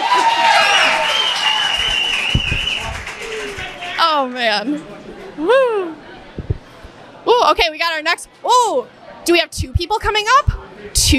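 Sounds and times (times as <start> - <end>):
cheers and whistles: 0.0 - 3.8
audience applause: 0.0 - 4.0
speech: 4.2 - 6.0, 7.3 - 11.1.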